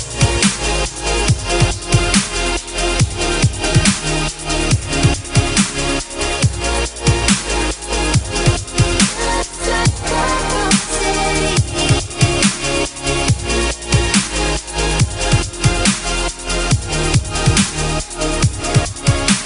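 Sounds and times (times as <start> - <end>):
trance beat: 0.0 - 19.4
female vocals: 9.1 - 12.1.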